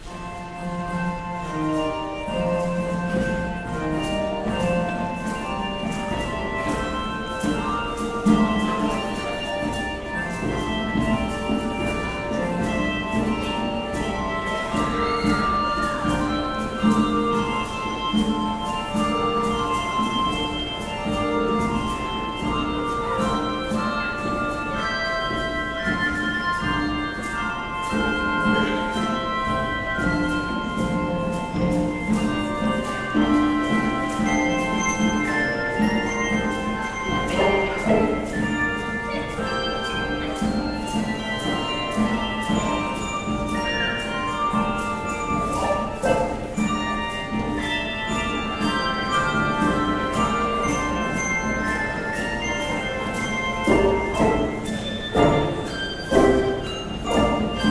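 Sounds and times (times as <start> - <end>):
handbells: 0.0 - 57.6.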